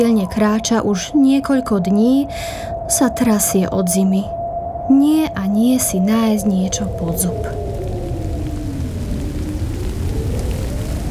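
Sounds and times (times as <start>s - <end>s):
speech: 0.0s - 7.6s
deep low rumble: 0.0s - 11.0s
steady rain: 5.9s - 11.0s.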